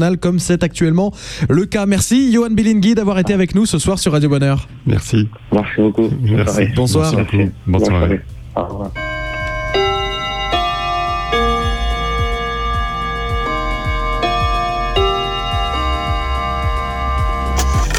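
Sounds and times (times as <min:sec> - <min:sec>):
speech: 0:00.0 - 0:09.1
cuckoo clock ticking: 0:08.2 - 0:17.9
cuckoo clock chiming the hour: 0:09.0 - 0:17.8.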